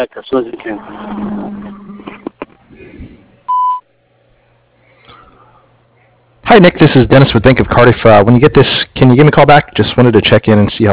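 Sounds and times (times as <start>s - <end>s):
speech: 0.0s - 1.6s, 6.5s - 10.9s
low noise: 0.0s - 10.9s
answering machine beep tone: 3.5s - 3.8s.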